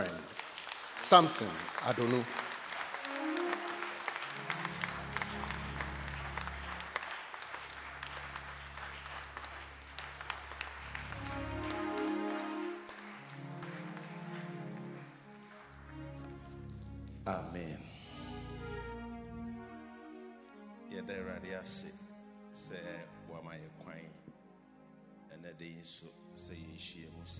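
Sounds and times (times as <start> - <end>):
audience applause: 0.0 - 16.7
speech: 1.1 - 2.4
low organ or keyboard chord droning: 2.9 - 27.3.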